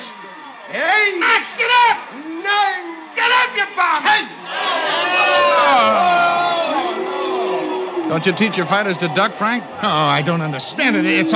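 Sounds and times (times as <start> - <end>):
boxing arena crowd shouting and roaring: 0.0 - 11.3
speech: 0.7 - 2.3, 8.1 - 11.3.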